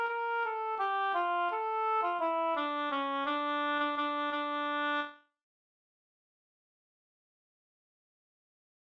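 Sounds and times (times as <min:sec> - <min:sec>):
waltz music: 0:00.0 - 0:04.7.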